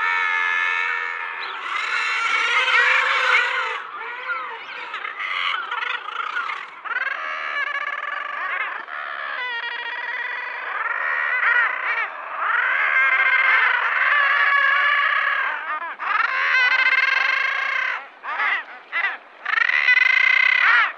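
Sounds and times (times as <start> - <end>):
Common guillemot colony calls: 0.0 - 20.9.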